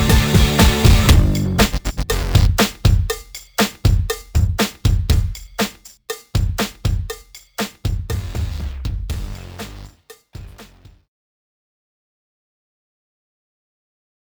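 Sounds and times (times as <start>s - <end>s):
instrumental music: 0.0s - 10.9s.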